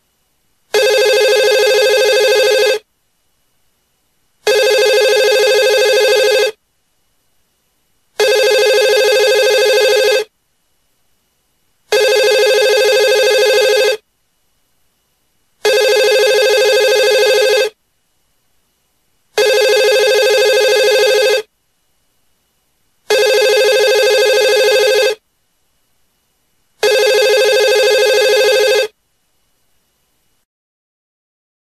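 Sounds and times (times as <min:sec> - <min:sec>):
telephone ringing: 0:00.8 - 0:02.8, 0:04.5 - 0:06.6, 0:08.2 - 0:10.3, 0:11.9 - 0:14.0, 0:15.6 - 0:17.8, 0:19.4 - 0:21.5, 0:23.1 - 0:25.2, 0:26.8 - 0:29.0.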